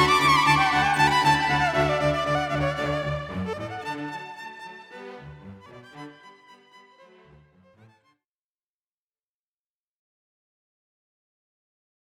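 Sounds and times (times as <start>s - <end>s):
keys and violin cocktail and dinner music: 0.0s - 8.0s.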